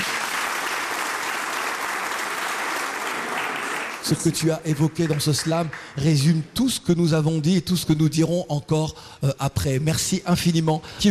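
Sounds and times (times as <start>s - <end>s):
audience applause for a slam poet: 0.0s - 6.0s
speech: 4.0s - 11.0s.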